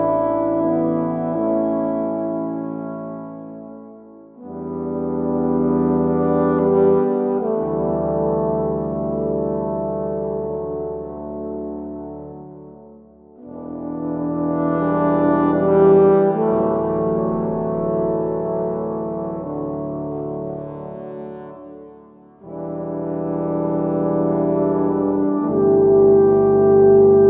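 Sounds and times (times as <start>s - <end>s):
quiet horns: 0.0s - 27.2s.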